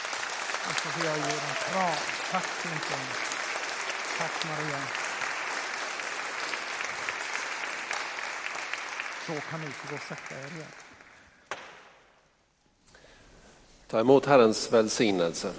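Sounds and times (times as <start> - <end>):
audience applause: 0.0 - 11.8
speech: 0.8 - 3.3, 4.2 - 5.0, 9.3 - 10.8, 13.9 - 15.5.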